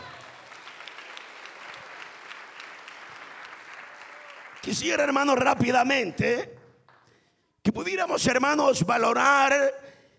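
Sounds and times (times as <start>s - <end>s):
audience applause: 0.0s - 5.3s
speech: 4.6s - 6.6s, 7.7s - 9.9s.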